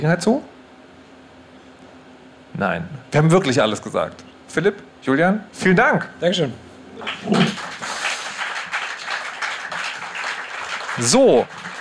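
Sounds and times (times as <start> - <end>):
speech: 0.0 - 0.5, 2.6 - 7.7, 11.0 - 11.6
audience applause: 7.0 - 11.8.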